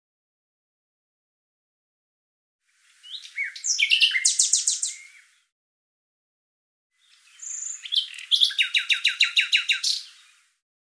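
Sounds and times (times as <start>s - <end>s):
bird calling in rapid high chirps: 3.0s - 5.3s, 7.0s - 10.2s.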